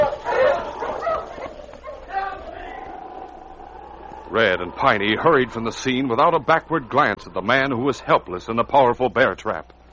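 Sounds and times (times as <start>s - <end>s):
huskies barking and yipping: 0.0s - 4.3s
speech: 4.3s - 9.8s.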